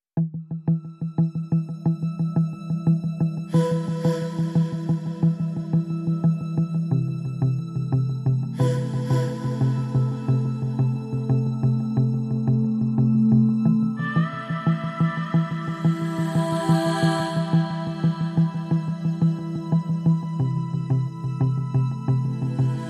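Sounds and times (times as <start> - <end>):
drone: 1.5 - 22.8
vocals: 3.4 - 6.7, 8.5 - 22.8.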